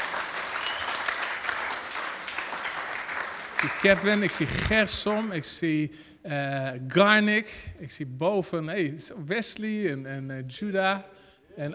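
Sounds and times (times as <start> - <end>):
audience applause: 0.0 - 5.2
speech: 3.6 - 11.7.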